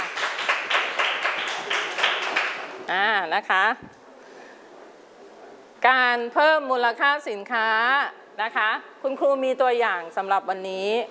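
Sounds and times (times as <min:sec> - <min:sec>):
classroom clapping for a group: 0:00.0 - 0:02.8
speech: 0:02.9 - 0:04.0, 0:05.8 - 0:11.0.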